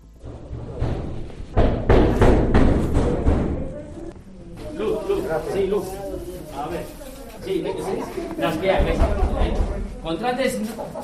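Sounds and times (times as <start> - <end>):
police banging on a door: 0.1 - 3.8, 8.7 - 9.9
speech: 5.3 - 6.0, 6.6 - 11.0.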